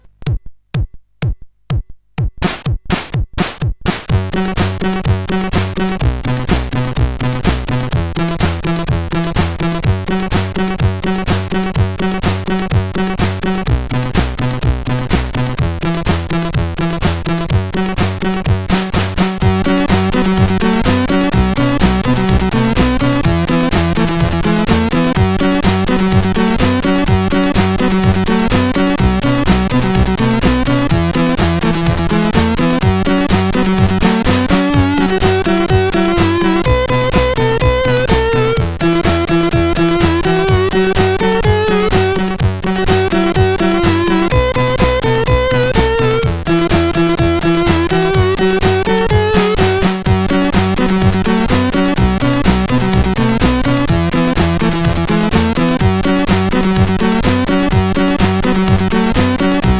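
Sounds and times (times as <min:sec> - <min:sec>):
SID CSG8580R5 chiptune disco music: 0:00.0 - 0:59.7.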